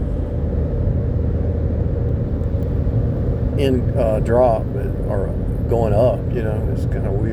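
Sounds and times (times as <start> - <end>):
car tire and road rumble cruising at 60 mph on a highway: 0.0 - 7.3
speech: 3.6 - 7.3.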